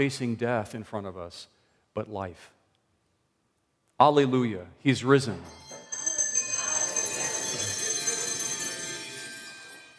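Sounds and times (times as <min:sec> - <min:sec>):
speech: 0:00.0 - 0:02.6, 0:04.0 - 0:05.6
handbells ringing: 0:05.5 - 0:09.9.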